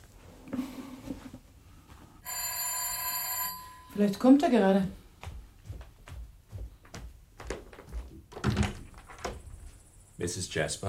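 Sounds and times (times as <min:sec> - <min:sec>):
speech: 0:04.0 - 0:05.0, 0:10.2 - 0:10.8
door being opened with dull thunks and knocks: 0:07.4 - 0:09.5.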